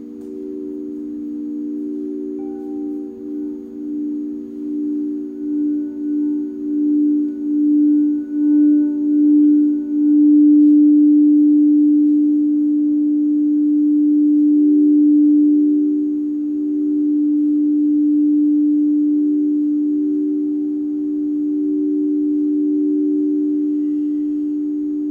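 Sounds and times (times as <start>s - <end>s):
live sound bath at Common Bond Yoga in Springfield, OR: 0.0s - 25.1s.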